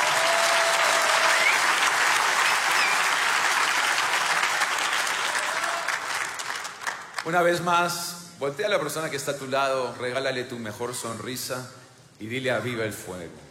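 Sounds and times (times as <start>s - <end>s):
audience applauding: 0.0s - 7.4s
speech: 7.2s - 13.4s.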